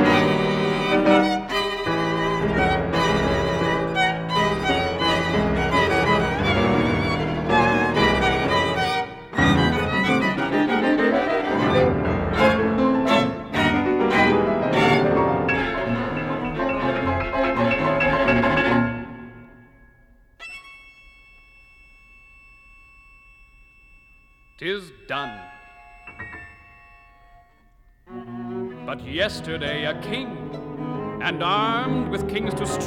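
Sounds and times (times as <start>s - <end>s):
string quartet: 0.0s - 19.5s, 28.1s - 32.8s
piano: 0.0s - 23.1s, 25.2s - 32.8s
narrator speaking: 24.6s - 25.5s, 31.2s - 32.8s.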